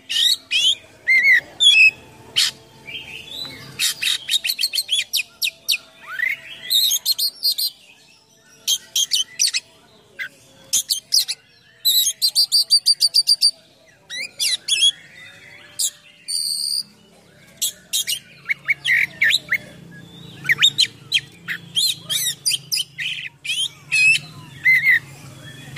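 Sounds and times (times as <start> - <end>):
Oriental magpie-robin song: 0.0 - 25.7.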